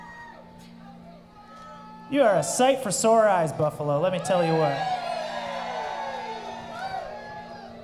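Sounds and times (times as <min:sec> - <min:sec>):
large crowd cheering and whooping at live show: 0:00.0 - 0:02.1, 0:04.2 - 0:07.8
speech: 0:02.1 - 0:05.1.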